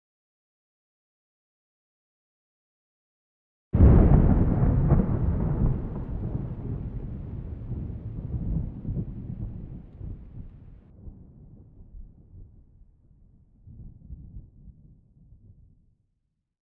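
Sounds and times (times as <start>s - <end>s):
thunder: 3.8s - 12.8s.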